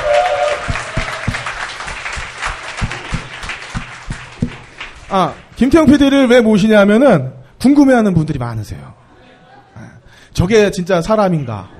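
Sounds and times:
audience applause: 0:00.0 - 0:05.5
speech: 0:05.1 - 0:09.0, 0:10.3 - 0:11.7.

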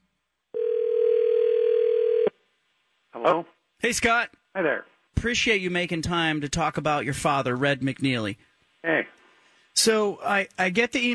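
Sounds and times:
telephone ringing: 0:00.6 - 0:02.3
speech: 0:03.2 - 0:09.2, 0:09.8 - 0:11.1.

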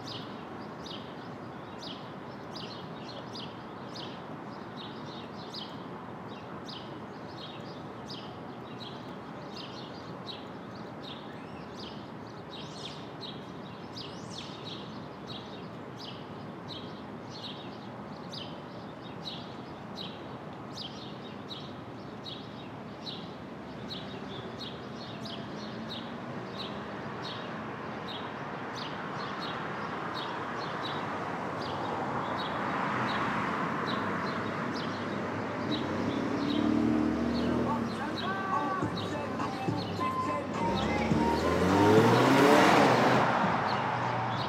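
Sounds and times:
Brooklyn city traffic hum at dawn: 0:00.0 - 0:44.4
bird chirping: 0:00.0 - 0:44.4
vehicle passing: 0:32.7 - 0:44.4.

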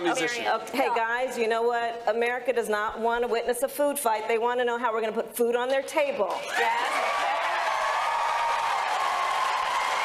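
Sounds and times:
speech: 0:00.1 - 0:07.1
audience applause: 0:06.4 - 0:10.0.

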